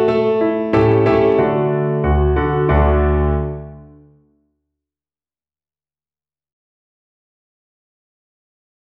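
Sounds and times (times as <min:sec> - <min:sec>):
piano accompaniment: 0:00.0 - 0:04.3.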